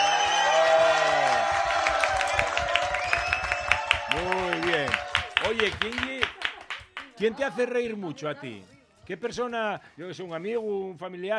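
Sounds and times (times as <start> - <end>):
audience applause: 0.0 - 7.2
speech: 7.2 - 11.3.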